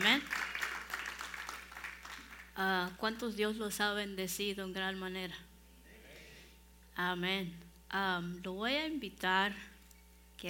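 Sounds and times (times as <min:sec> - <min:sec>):
audience applause: 0:00.0 - 0:02.5
speech: 0:02.6 - 0:05.5, 0:07.0 - 0:09.7.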